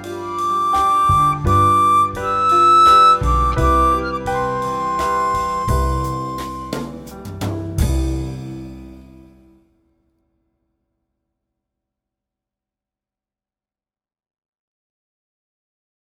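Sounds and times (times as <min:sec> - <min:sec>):
Santa Lucia C 85 harp playing: 0:00.0 - 0:06.8.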